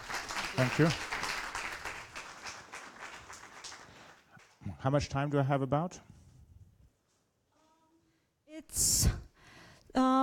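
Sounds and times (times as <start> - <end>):
audience applause: 0.0 - 4.2
speech: 0.6 - 1.1, 4.8 - 6.2.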